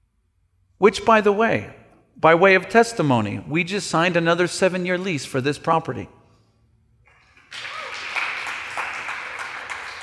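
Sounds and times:
speech: 0.8s - 6.2s
fast audience clapping: 7.1s - 10.0s.

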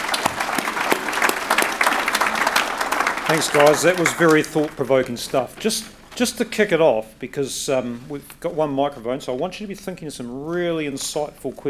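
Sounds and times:
audience applause: 0.0s - 5.9s
speech: 3.3s - 11.6s.

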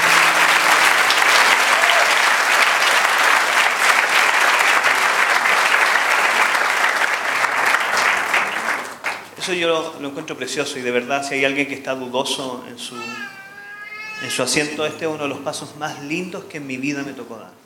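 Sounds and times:
large audience applause: 0.0s - 9.4s
speech: 9.5s - 13.4s, 14.2s - 17.6s.

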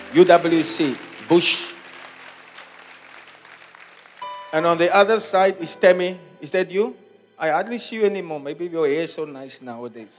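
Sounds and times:
audience clapping: 0.0s - 5.5s
speech: 0.1s - 1.7s, 4.5s - 10.1s.

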